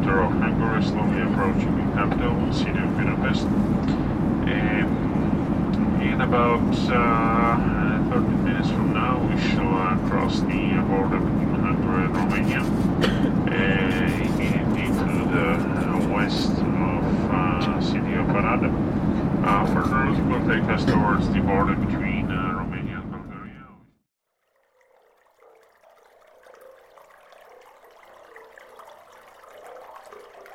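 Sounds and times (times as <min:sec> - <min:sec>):
aircraft roar at Brussels Airport: 0:00.0 - 0:23.8
speech: 0:00.8 - 0:05.0, 0:06.1 - 0:16.7, 0:17.4 - 0:22.1.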